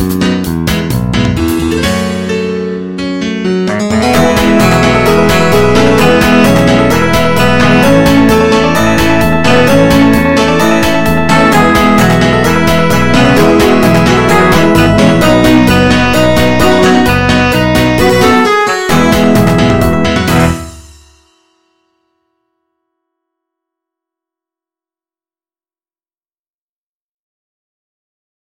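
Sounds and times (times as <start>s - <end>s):
dance music: 0.0s - 21.2s.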